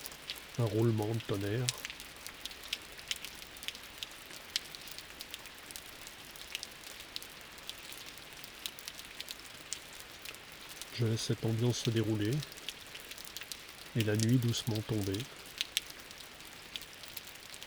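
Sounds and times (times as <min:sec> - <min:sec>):
rain falling at nightfall: 0:00.0 - 0:17.6
speech: 0:00.6 - 0:01.8, 0:11.0 - 0:12.6, 0:14.0 - 0:15.4.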